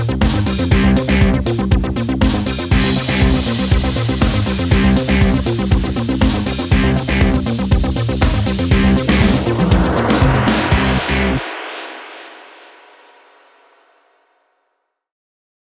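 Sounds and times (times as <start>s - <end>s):
electro disco music: 0.0s - 12.2s.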